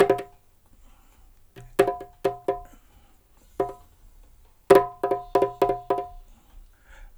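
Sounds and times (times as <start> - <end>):
dub percussion loops: 0.0 - 0.3, 1.7 - 2.7, 3.6 - 3.8, 4.7 - 6.1.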